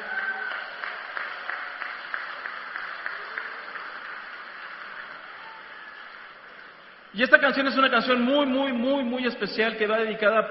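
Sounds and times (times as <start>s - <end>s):
audience applause: 0.0s - 7.1s
speech: 7.1s - 10.4s.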